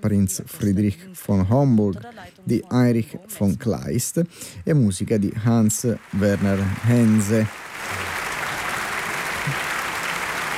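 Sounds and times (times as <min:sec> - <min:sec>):
speech: 0:00.0 - 0:08.1
audience applause after opera performance: 0:05.2 - 0:10.5.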